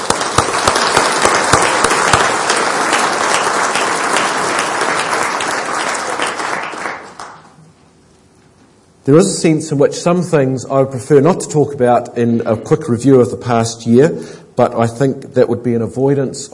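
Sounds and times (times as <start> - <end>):
audience applause: 0.0 - 7.6
speech: 9.0 - 16.5.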